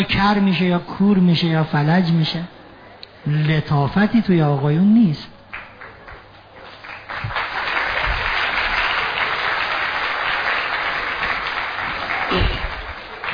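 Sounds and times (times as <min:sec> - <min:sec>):
speech: 0:00.0 - 0:02.6, 0:03.2 - 0:05.4
audience applauding during a talk: 0:05.5 - 0:13.3.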